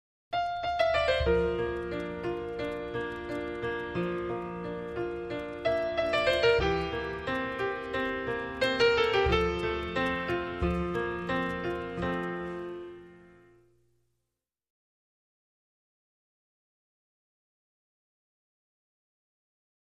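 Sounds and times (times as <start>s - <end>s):
solo piano: 0.3s - 13.8s.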